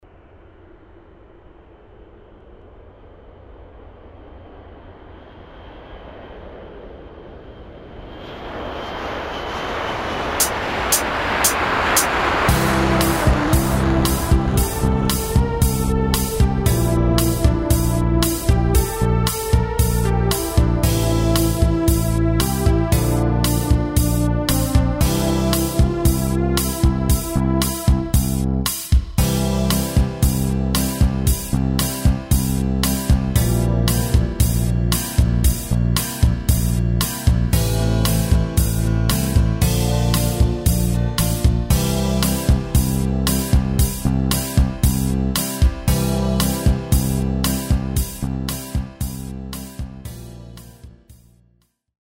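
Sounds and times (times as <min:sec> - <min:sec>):
backing music without melody: 0:10.4 - 0:51.5.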